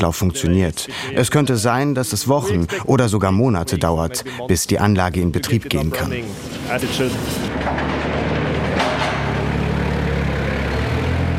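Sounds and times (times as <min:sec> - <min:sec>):
speech: 0:00.0 - 0:08.1
forklift engine running in factory hall: 0:06.3 - 0:11.3.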